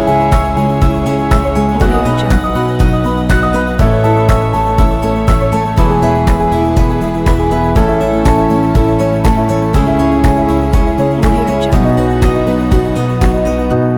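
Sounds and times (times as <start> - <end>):
guitar loop: 0.0 - 13.8.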